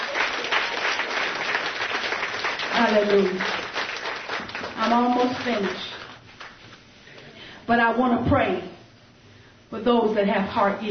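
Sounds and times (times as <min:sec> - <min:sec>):
audience clapping hands: 0:00.0 - 0:06.7
speech: 0:02.9 - 0:03.6, 0:04.8 - 0:06.0, 0:07.7 - 0:08.8, 0:09.7 - 0:10.8.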